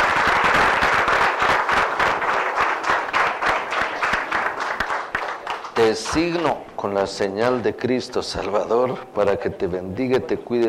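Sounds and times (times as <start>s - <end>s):
audience applauding: 0.0s - 6.5s
speech: 5.8s - 10.6s.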